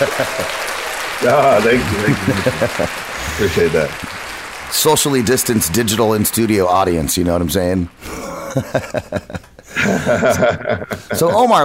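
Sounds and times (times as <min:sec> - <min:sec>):
laughter: 0:00.0 - 0:04.1, 0:08.0 - 0:11.6
applause sound effect: 0:00.0 - 0:08.0
speech: 0:00.0 - 0:11.6.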